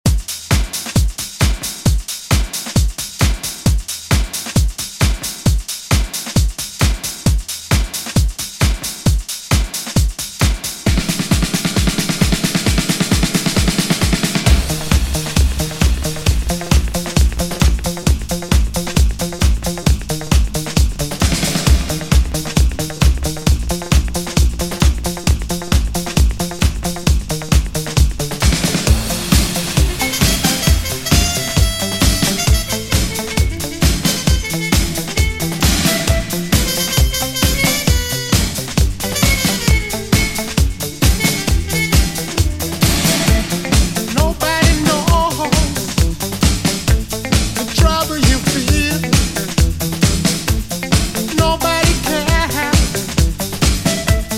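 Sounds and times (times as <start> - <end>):
80s funk drum beat: 0.0 - 54.3.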